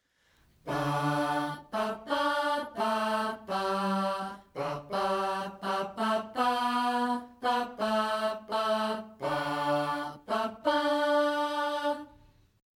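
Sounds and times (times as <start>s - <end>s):
birthday song: 0.2s - 12.4s.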